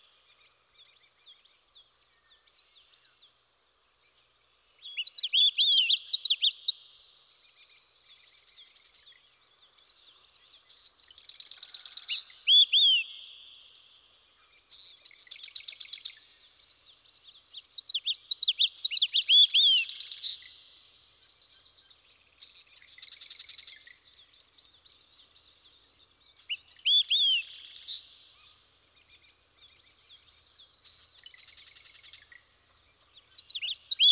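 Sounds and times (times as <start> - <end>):
yellowthroat: 0.0 - 34.1.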